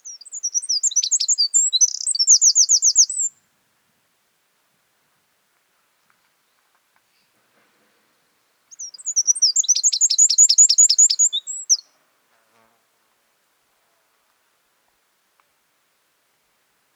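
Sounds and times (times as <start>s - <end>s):
Northern wren song: 0.0s - 3.4s, 8.7s - 11.9s.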